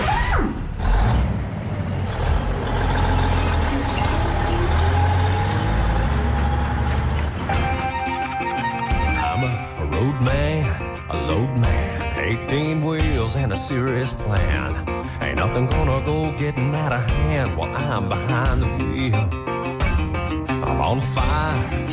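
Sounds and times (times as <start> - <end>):
big American truck engine starting up and running: 0.0 - 21.9
music with a steady beat: 7.5 - 21.9
speech: 15.6 - 19.4, 20.9 - 21.9.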